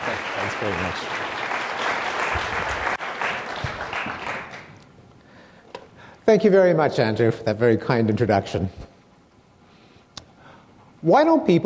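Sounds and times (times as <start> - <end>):
audience applause welcoming a lecturer before a psychology talk: 0.0 - 4.8
speech: 0.4 - 1.4, 6.3 - 8.9, 11.0 - 11.6.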